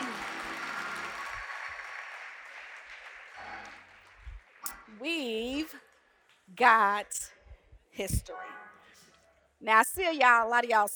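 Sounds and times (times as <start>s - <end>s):
crowd clapping: 0.0s - 4.9s
speech: 5.0s - 5.8s, 6.6s - 7.4s, 8.0s - 8.6s, 9.6s - 10.9s.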